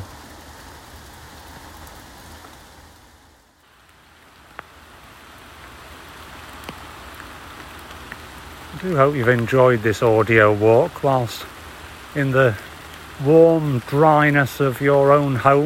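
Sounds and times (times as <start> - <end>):
pouring rain in a wood: 0.0 - 15.6
speech: 8.8 - 11.5, 12.2 - 15.6.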